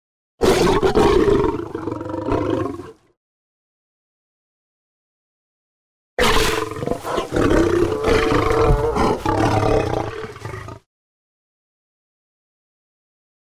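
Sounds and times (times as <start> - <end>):
lion growling: 0.4 - 3.1, 6.2 - 10.9.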